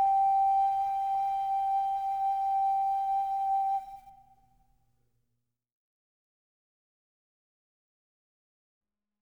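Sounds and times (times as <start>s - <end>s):
Polish lullaby: 0.0s - 4.1s.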